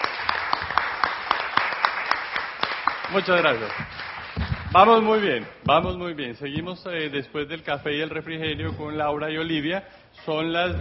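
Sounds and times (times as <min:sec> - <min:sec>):
audience applause at a conference session: 0:00.0 - 0:05.6
speech: 0:03.1 - 0:04.1, 0:04.7 - 0:10.7.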